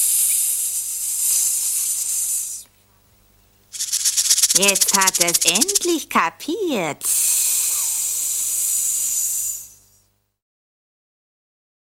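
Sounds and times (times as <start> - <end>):
rattlesnake rattling: 0.0 - 2.6, 3.7 - 6.0, 7.2 - 9.7
speech: 4.6 - 7.2.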